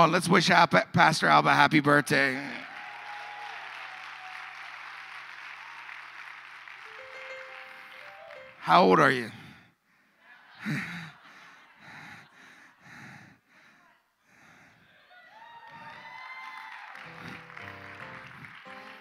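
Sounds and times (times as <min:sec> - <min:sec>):
speech: 0:00.0 - 0:02.6, 0:08.7 - 0:09.4, 0:10.6 - 0:11.0
audience applause: 0:02.6 - 0:09.0, 0:15.4 - 0:18.9
gasps and laughter: 0:10.2 - 0:15.2.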